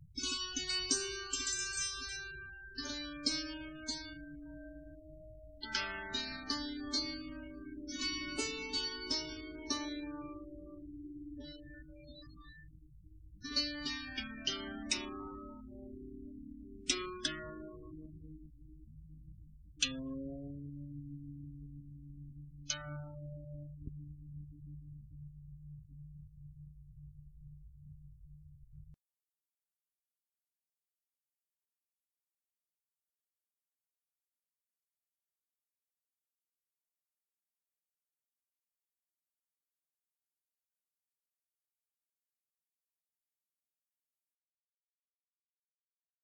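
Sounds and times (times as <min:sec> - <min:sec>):
instrumental music: 0:00.0 - 0:28.1.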